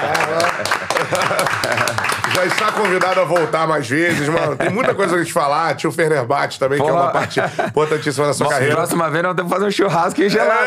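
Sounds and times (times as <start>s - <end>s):
laughter: 0.0s - 2.9s, 3.9s - 5.3s, 6.7s - 8.9s, 10.2s - 10.6s
applause: 0.0s - 3.8s
speech: 0.5s - 10.6s.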